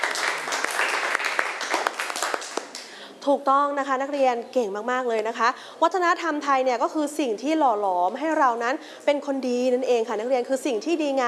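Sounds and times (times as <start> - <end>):
classroom applause: 0.0 - 2.9
speech: 3.2 - 11.2.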